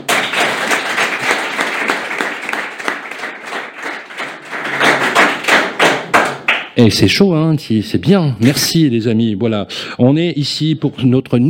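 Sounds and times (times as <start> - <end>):
audience applause: 0.0 - 6.6
speech: 6.8 - 11.4.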